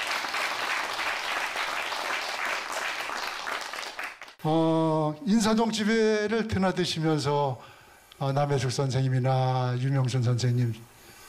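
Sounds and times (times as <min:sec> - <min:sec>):
audience applause: 0:00.0 - 0:04.4
speech: 0:04.4 - 0:10.9.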